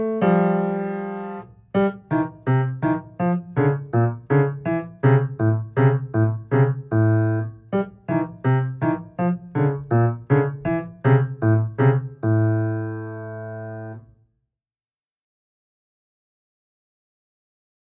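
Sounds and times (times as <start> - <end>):
piano exercises for second and third finger combination: 0.0 - 14.1.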